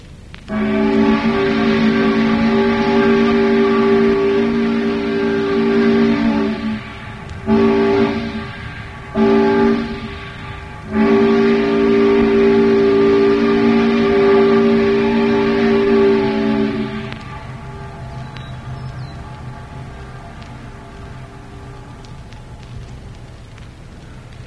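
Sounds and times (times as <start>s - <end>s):
towboat steam whistle blowing: 0.5s - 23.9s.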